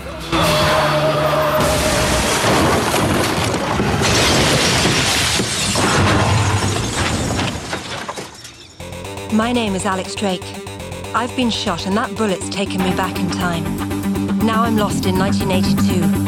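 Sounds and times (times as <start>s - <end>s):
car crashing and overturning onto its roof: 0.3s - 9.1s
speech: 9.4s - 16.2s.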